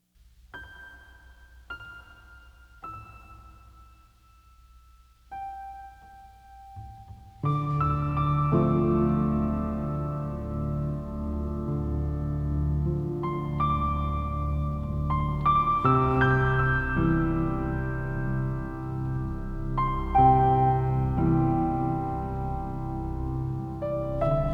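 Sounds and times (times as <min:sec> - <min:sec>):
relaxing piano lullaby: 0:00.5 - 0:24.5.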